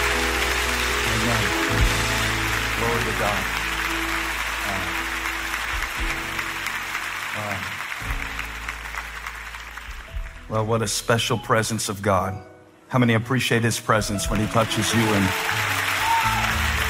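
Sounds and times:
audience clapping hands: 0:00.0 - 0:10.6, 0:14.3 - 0:16.8
speech: 0:02.9 - 0:03.6, 0:10.5 - 0:15.7.

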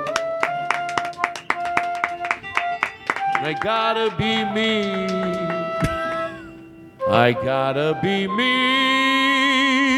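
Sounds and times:
audience clapping in a steady rhythm: 0:00.0 - 0:05.9
sustained musical tones: 0:00.0 - 0:09.9
speech: 0:03.4 - 0:06.0, 0:07.1 - 0:09.0.

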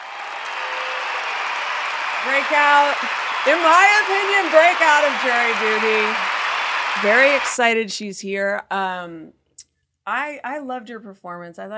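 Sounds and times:
applause sound effect: 0:00.0 - 0:07.6
speech: 0:02.2 - 0:06.3, 0:07.0 - 0:09.4, 0:10.1 - 0:11.7.

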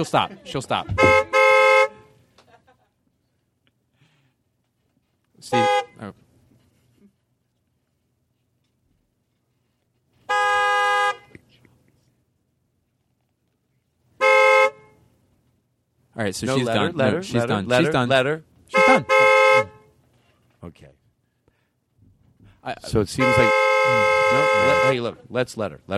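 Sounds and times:
speech: 0:00.0 - 0:01.2, 0:05.4 - 0:06.1, 0:16.2 - 0:19.2, 0:20.7 - 0:21.0, 0:22.6 - 0:25.9
car horn honking: 0:00.9 - 0:02.3, 0:05.4 - 0:06.0, 0:10.2 - 0:11.4, 0:14.2 - 0:15.1, 0:18.7 - 0:20.0, 0:23.1 - 0:25.1.

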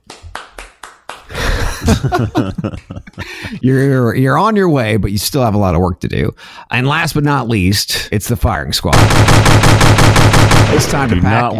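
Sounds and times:
golf clap: 0:00.0 - 0:01.5, 0:02.2 - 0:03.4
laughter and voices: 0:01.3 - 0:03.6
speech: 0:01.9 - 0:11.5.

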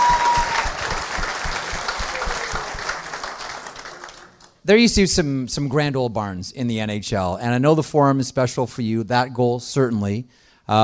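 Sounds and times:
round of applause: 0:00.0 - 0:04.6
speech: 0:04.7 - 0:10.8.

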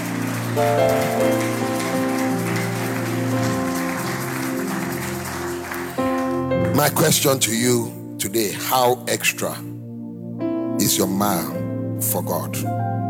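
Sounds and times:
crowd clapping: 0:00.0 - 0:07.4
sustained keyboard or organ chords: 0:00.0 - 0:13.0
speech: 0:00.6 - 0:01.3, 0:06.8 - 0:09.7, 0:10.8 - 0:12.9.

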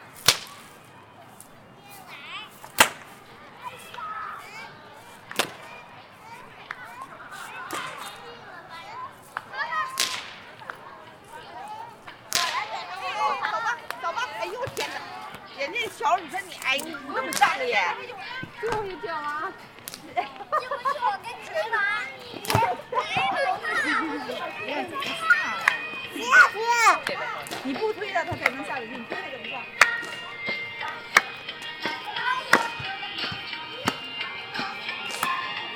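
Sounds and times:
city sounds at Ditan in Beijing: 0:00.0 - 0:35.7
laughter: 0:12.0 - 0:18.0, 0:18.6 - 0:32.4.

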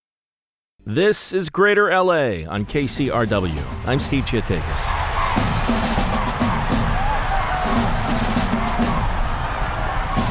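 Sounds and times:
speech: 0:00.9 - 0:06.0
huge stadium crowd roaring and screaming at a football game: 0:03.0 - 0:10.3.

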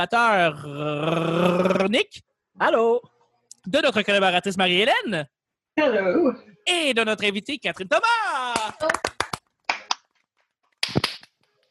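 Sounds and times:
speech: 0:00.0 - 0:09.0
man clapping his hands: 0:08.4 - 0:10.2, 0:10.8 - 0:11.4.

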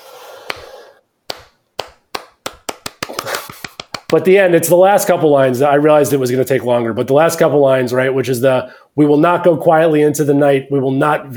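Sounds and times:
slow clap speeding up into quicker clapping: 0:01.3 - 0:04.2
speech: 0:04.1 - 0:11.3.

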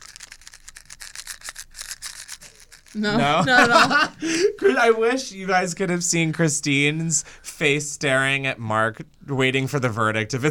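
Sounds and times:
pretzels shaken in a cardboard box: 0:00.0 - 0:03.0
laughter: 0:03.0 - 0:05.0
speech: 0:03.0 - 0:10.4.

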